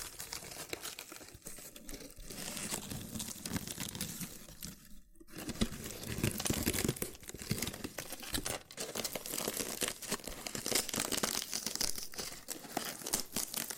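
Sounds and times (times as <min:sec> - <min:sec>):
loofah crinkling and scratchy peeling: 0:00.0 - 0:13.7.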